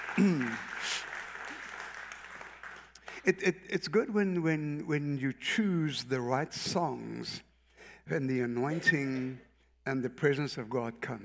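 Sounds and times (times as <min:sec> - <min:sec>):
audience applause: 0:00.0 - 0:03.2
speech: 0:00.2 - 0:01.0, 0:03.2 - 0:07.5, 0:08.1 - 0:11.2.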